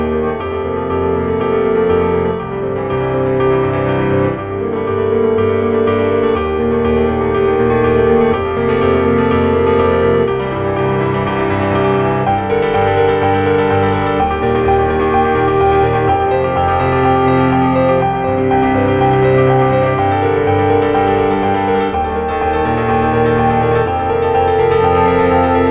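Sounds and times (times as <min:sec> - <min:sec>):
CFX grand piano run: 0:00.0 - 0:25.6.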